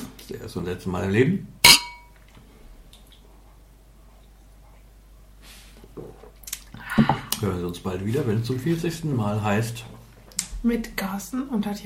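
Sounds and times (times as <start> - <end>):
speech: 0.3 - 1.6, 7.4 - 10.0, 10.6 - 11.8
glasses clinking in a toast: 1.6 - 2.1.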